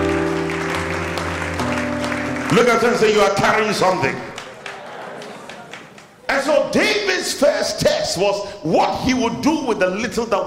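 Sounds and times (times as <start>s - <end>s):
sustained low keyboard or organ chord: 0.0s - 3.2s
audience clapping: 0.0s - 6.3s
speech: 2.5s - 4.3s, 6.7s - 10.4s.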